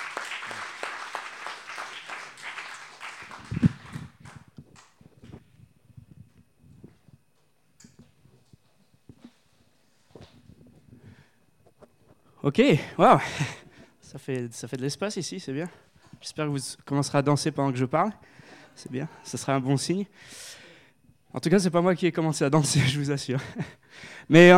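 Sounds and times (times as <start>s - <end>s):
audience clapping: 0.0s - 5.0s
speech: 12.4s - 13.6s, 14.2s - 20.4s, 21.3s - 24.5s.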